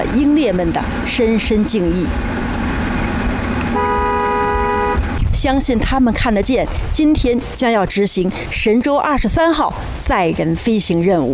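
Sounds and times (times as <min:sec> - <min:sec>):
traffic noise: 0:00.0 - 0:11.3
speech: 0:00.2 - 0:02.4, 0:05.4 - 0:11.3
car horns honking passing a revolutionary martyrs' cemetery in Dongfeng: 0:03.6 - 0:05.2.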